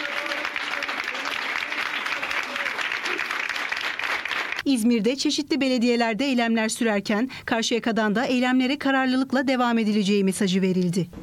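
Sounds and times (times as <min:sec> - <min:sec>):
municipal workers clapping in protest as the mayor enters the council hall: 0:00.0 - 0:04.6
speech: 0:04.6 - 0:11.2.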